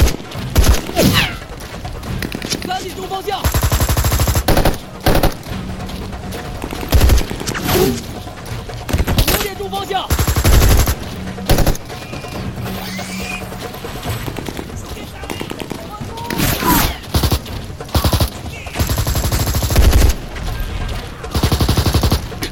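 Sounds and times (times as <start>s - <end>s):
battle-scene machine-gun fire: 0.0s - 1.2s, 2.1s - 5.5s, 6.6s - 7.8s, 8.9s - 11.8s, 14.2s - 22.5s
speech: 3.0s - 3.6s.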